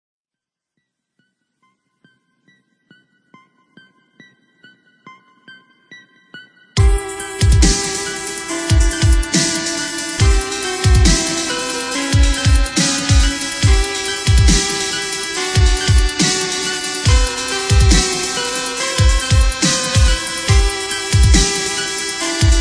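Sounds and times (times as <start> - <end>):
dubstep remix: 6.8 - 22.5.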